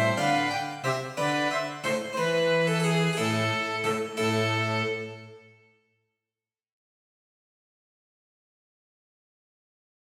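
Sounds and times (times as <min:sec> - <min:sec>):
harpsichord: 0:00.0 - 0:05.3
flute: 0:00.0 - 0:05.5
cello: 0:00.0 - 0:05.6
violin: 0:00.0 - 0:05.6.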